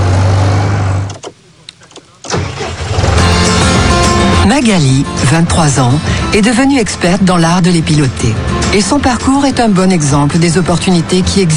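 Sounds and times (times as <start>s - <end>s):
tractor engine starting: 0.0s - 6.4s
speech: 4.5s - 11.5s.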